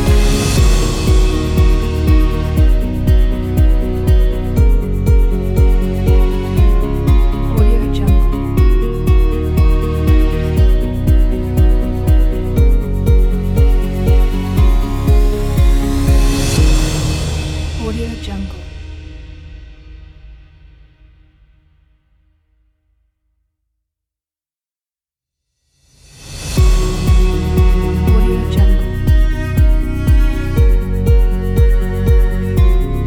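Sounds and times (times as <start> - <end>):
energetic uplifting summer folk music: 0.0 - 18.6, 26.6 - 33.0.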